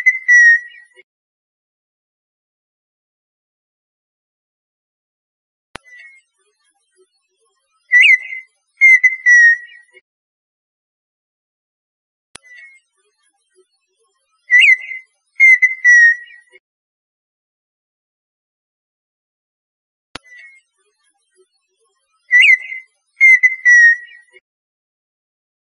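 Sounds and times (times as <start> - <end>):
partridge song of clicks and whistles: 0.0 - 0.9, 7.9 - 9.9, 14.5 - 16.5, 22.2 - 24.4.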